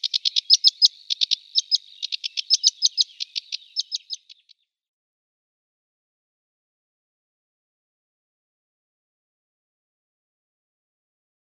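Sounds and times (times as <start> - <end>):
sedge warbler singing: 0.0 - 4.6.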